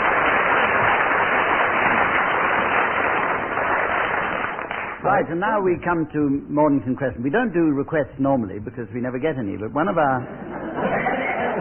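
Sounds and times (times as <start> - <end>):
round of applause: 0.0 - 5.0
speech: 5.1 - 11.0
laughter: 10.2 - 11.6.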